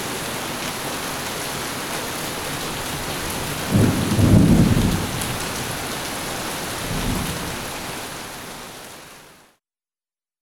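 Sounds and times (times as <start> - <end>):
steady downpour: 0.0 - 9.6
thunder: 3.5 - 5.7, 6.9 - 7.6.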